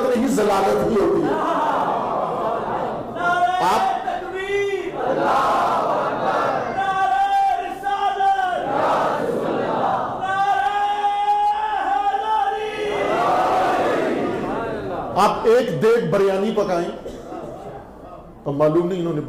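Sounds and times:
speech: 0.2 - 1.6, 15.4 - 17.1, 18.4 - 19.2
crowd at a religious gathering chanting slogans in unison: 1.2 - 3.8, 4.7 - 15.2.

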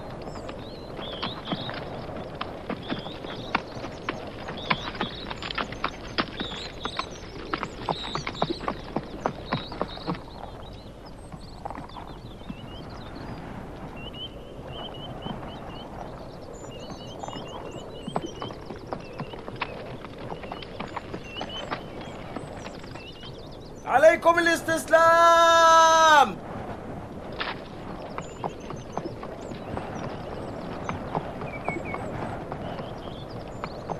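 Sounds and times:
horse hooves clip-clopping: 0.1 - 13.1, 16.7 - 23.4, 27.4 - 33.9
speech: 24.2 - 25.5.

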